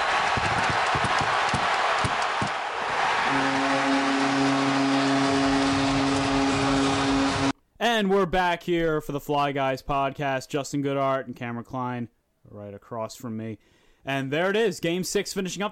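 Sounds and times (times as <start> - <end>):
hockey arena crowd roaring: 0.0 - 7.5
speech: 8.0 - 15.7.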